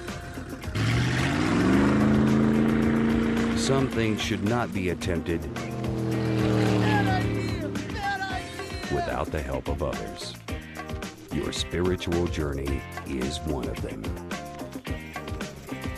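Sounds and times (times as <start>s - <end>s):
motorboat engine towing water skier: 0.0s - 9.3s
speech: 3.7s - 5.7s, 9.2s - 10.4s, 11.3s - 14.2s.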